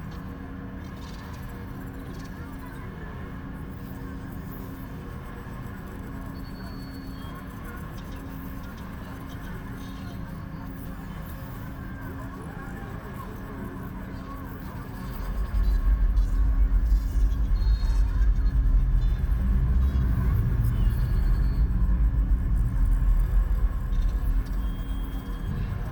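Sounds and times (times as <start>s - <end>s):
ambience: 15.0s - 25.9s.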